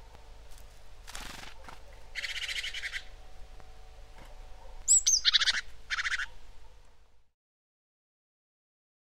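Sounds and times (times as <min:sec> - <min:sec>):
great tit singing ti-tyy song: 0:02.1 - 0:03.2, 0:04.4 - 0:06.7.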